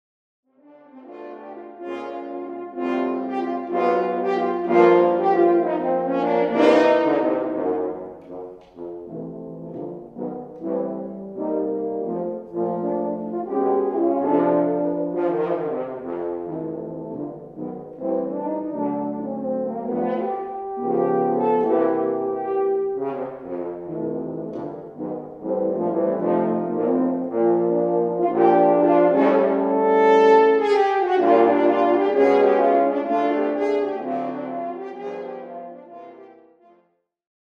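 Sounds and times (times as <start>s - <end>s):
horns: 0.6s - 36.8s.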